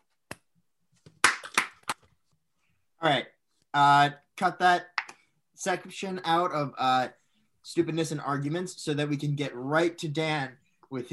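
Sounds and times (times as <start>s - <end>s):
people clapping in unison: 1.2s - 2.0s
speech: 3.0s - 4.9s, 5.6s - 11.1s.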